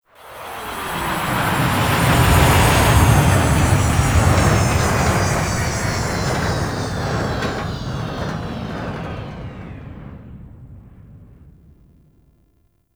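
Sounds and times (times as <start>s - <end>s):
Grineer ship Liset extraction arrival: 0.4s - 12.5s.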